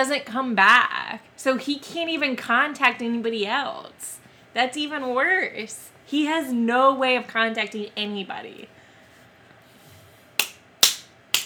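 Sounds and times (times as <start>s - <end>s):
speech: 0.0s - 8.8s
hand claps: 10.4s - 11.4s.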